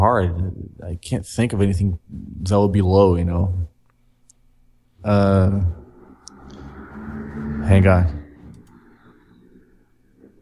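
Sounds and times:
speech: 0.1 - 3.6, 5.0 - 5.8, 7.6 - 8.2
motorcycle passing by outside: 5.5 - 9.6.

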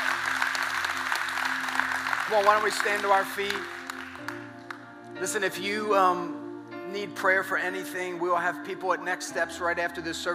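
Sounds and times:
audience clapping: 0.0 - 4.9
speech: 2.3 - 3.8, 5.2 - 10.3.

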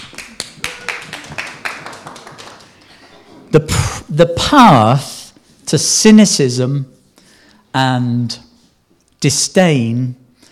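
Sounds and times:
short audience applause: 0.0 - 3.2
speech: 3.5 - 5.1, 5.7 - 7.0, 7.7 - 8.5, 9.2 - 10.2.

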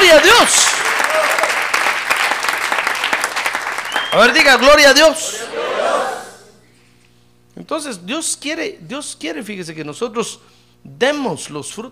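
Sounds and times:
audience applause: 0.0 - 4.7
speech: 0.2 - 1.4, 4.1 - 6.2, 7.6 - 11.9.

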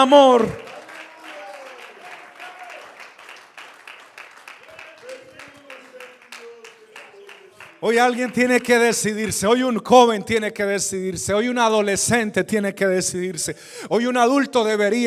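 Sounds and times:
speech: 0.0 - 0.7, 7.8 - 15.0
audience clapping: 0.0 - 9.7.

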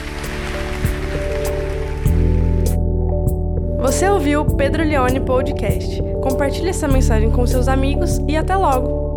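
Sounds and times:
applause: 0.0 - 2.7
speech: 3.9 - 9.0.

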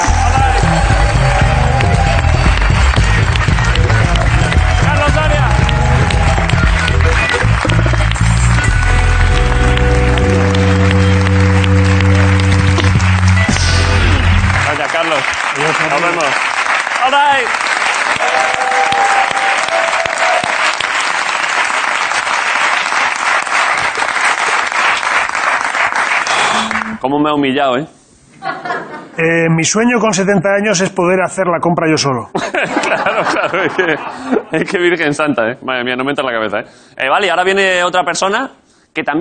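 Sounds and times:
audience applause: 0.0 - 27.0
speech: 27.2 - 28.0, 29.2 - 39.2
laughter: 28.4 - 29.2, 32.3 - 34.8.

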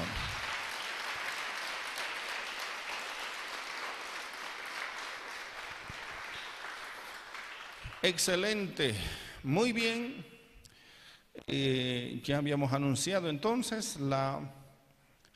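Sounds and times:
audience applause: 0.0 - 8.4
speech: 8.0 - 10.3, 11.4 - 14.6.

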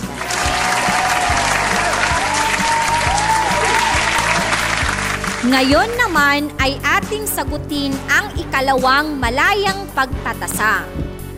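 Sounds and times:
applause sound effect: 0.0 - 6.0
speech: 5.4 - 11.0.

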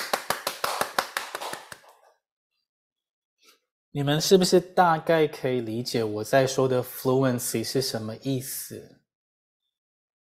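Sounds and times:
people clapping for students: 0.0 - 2.0
speech: 3.9 - 9.0.

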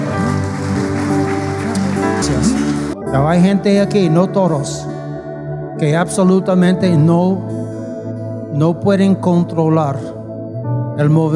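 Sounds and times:
audience applauding: 0.0 - 3.0
speech: 3.1 - 5.0, 5.8 - 7.6, 8.5 - 10.2, 11.0 - 11.3.

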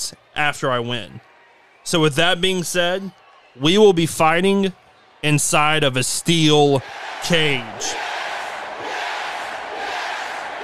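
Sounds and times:
speech: 0.0 - 8.0
wrestling crowd cheering: 0.0 - 10.6.

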